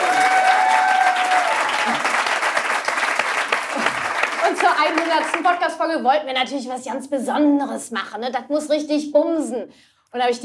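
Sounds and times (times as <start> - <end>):
audience clapping: 0.0 - 5.8
speech: 4.8 - 10.4.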